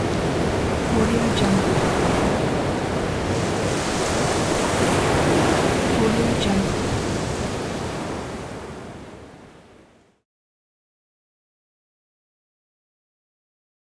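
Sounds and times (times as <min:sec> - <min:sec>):
sea waves: 0:00.0 - 0:10.1.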